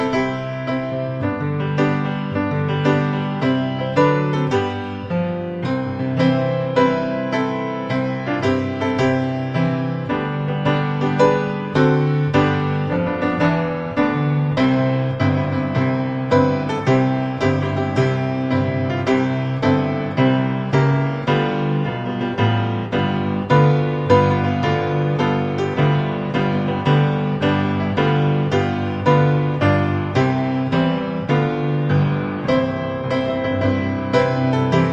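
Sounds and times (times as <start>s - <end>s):
beautiful solo piano performance: 0.0s - 34.9s.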